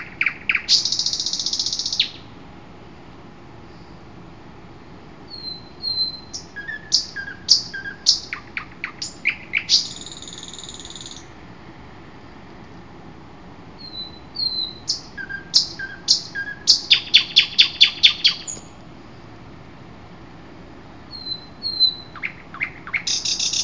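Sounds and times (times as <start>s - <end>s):
common nightingale song: 0.0s - 2.4s, 5.2s - 11.4s, 13.7s - 19.3s, 21.0s - 23.6s.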